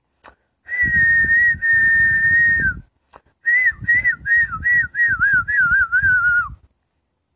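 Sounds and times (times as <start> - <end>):
person whistling like a singing bird: 0.7 - 2.8, 3.4 - 6.6.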